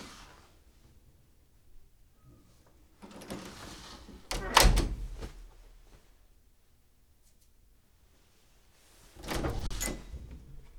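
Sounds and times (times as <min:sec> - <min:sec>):
door opening and closing: 0:03.3 - 0:05.3, 0:09.2 - 0:10.7.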